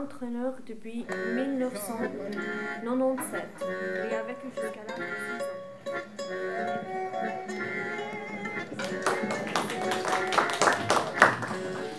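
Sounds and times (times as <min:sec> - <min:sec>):
speech: 0:00.0 - 0:07.7
laughter: 0:01.1 - 0:11.9
audience applause: 0:05.4 - 0:11.9.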